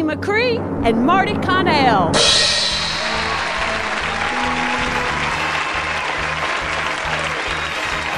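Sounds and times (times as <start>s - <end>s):
speech: 0.1s - 2.5s
audience applause welcoming the Squirrelly Awards hosts: 2.6s - 8.1s.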